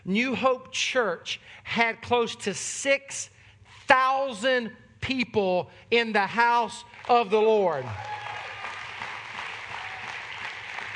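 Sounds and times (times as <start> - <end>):
speech: 0.0 - 8.2
crowd applauding: 7.0 - 10.9.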